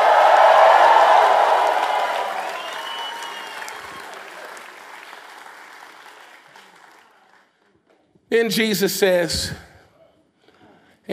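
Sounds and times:
audience applause: 0.0 - 7.5
speech: 8.3 - 9.7.

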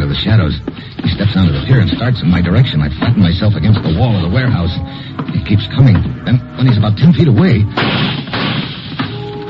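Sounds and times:
speech: 0.2 - 8.2
gunshots: 7.7 - 9.2.

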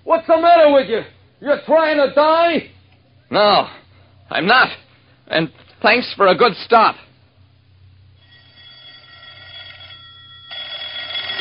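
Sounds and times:
speech: 0.1 - 7.1
telephone ringing: 8.2 - 11.3.

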